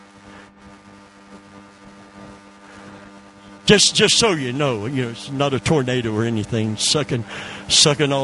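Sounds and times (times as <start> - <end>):
air conditioning running: 2.6 - 8.2
speech: 3.7 - 8.2.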